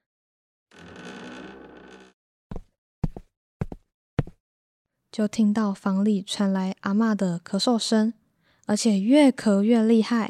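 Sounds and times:
front door opening: 0.7s - 2.2s
speech: 5.2s - 10.2s.

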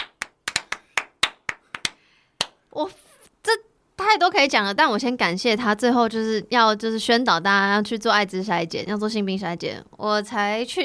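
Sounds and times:
hand clapping: 0.0s - 2.6s
speech: 2.8s - 10.8s.

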